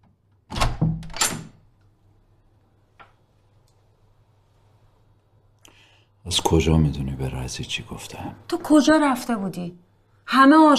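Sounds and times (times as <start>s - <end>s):
door thudding and rattling: 0.5s - 1.6s
speech: 6.2s - 10.7s.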